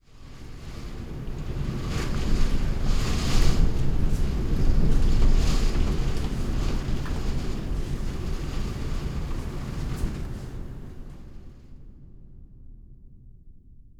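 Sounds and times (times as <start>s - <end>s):
rain: 0.4s - 11.0s.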